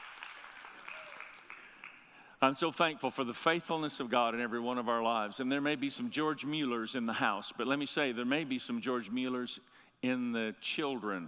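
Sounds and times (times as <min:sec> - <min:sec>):
audience clapping: 0:00.0 - 0:02.2
speech: 0:02.4 - 0:11.2.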